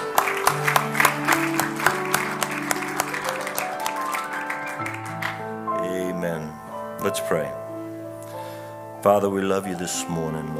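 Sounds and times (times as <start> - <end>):
audience applause: 0.0 - 5.8
speech: 7.1 - 7.6, 9.0 - 10.5.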